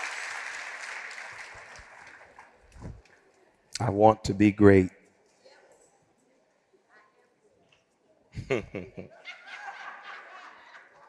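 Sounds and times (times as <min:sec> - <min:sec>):
audience hand clapping: 0:00.0 - 0:02.8
speech: 0:03.8 - 0:05.0
laughter: 0:08.4 - 0:11.0.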